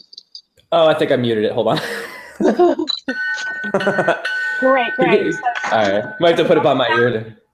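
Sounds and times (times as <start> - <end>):
speech: 0.7 - 7.4
laughter: 1.6 - 4.4, 5.0 - 7.1
game buzzer sound: 3.2 - 7.1.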